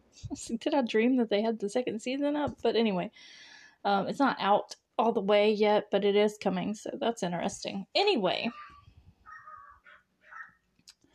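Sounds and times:
speech: 0.2 - 8.7
dogs barking: 9.3 - 10.6.

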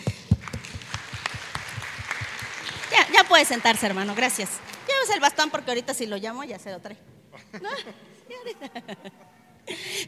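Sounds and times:
audience applause: 0.0 - 5.6
speech: 3.3 - 10.0
laughter: 7.4 - 9.5.

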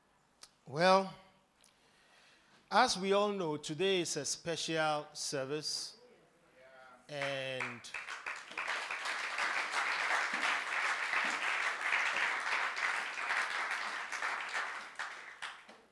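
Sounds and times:
speech: 0.7 - 1.2, 2.7 - 6.0, 7.1 - 8.6
audience applause at a special service: 7.2 - 15.9.

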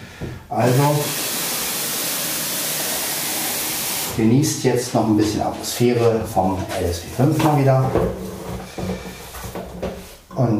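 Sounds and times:
speech: 0.5 - 1.2, 4.2 - 9.2, 10.4 - 10.5
coffee machine hissing steam: 0.6 - 4.2.

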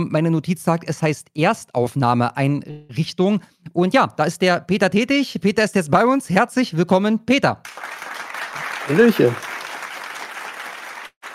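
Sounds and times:
speech: 0.0 - 8.2, 8.9 - 9.5
group applause: 7.6 - 11.3.

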